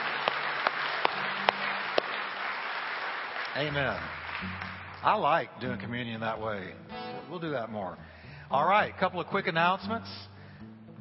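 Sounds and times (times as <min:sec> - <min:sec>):
church congregation applauding in praise: 0:00.0 - 0:06.0
speech: 0:03.6 - 0:10.9.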